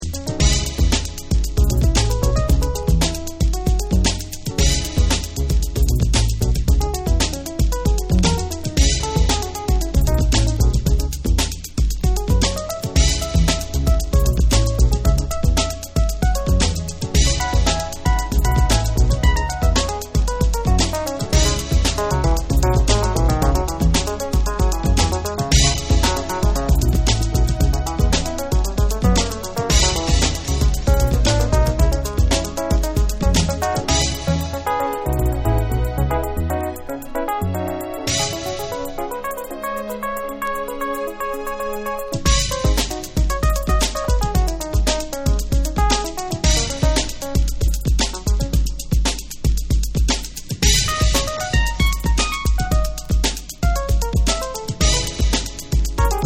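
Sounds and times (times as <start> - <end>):
jazz dub music: 0.0 - 56.2.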